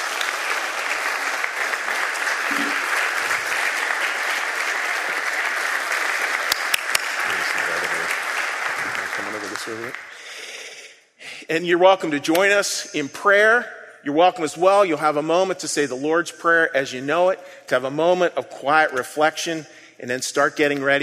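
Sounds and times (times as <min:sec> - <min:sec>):
crowd applause: 0:00.0 - 0:10.6
speech: 0:09.7 - 0:10.1, 0:11.5 - 0:21.0.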